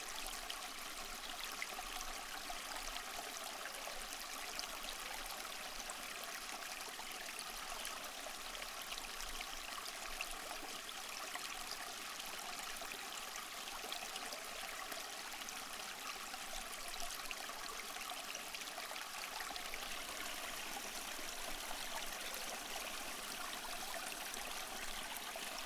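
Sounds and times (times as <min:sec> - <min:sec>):
small stream flowing: 0:00.0 - 0:25.6.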